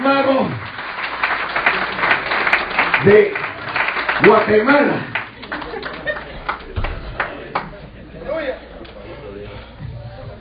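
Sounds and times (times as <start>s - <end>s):
audience applause: 0.2s - 7.8s
speech: 3.0s - 3.5s, 4.2s - 5.2s
laughter: 5.3s - 8.7s.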